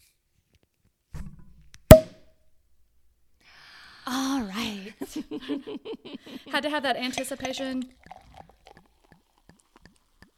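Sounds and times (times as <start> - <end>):
cork popping: 1.2 - 2.2, 7.1 - 10.3
speech: 4.1 - 8.1
laughter: 5.0 - 6.5
drink pouring with hollow glugs: 7.0 - 10.3.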